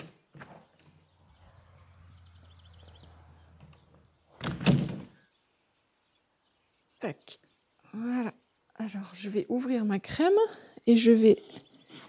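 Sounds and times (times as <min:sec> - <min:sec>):
refrigerator door opening: 0:04.4 - 0:05.2
speech: 0:07.0 - 0:11.6.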